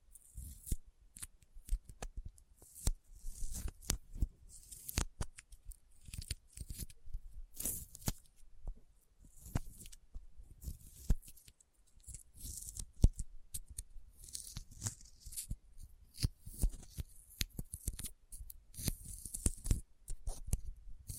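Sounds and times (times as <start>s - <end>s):
sticky fingers pressing and peeling apart: 0.4s - 4.0s, 4.6s - 7.0s, 7.6s - 8.3s, 10.6s - 18.1s, 18.7s - 21.1s.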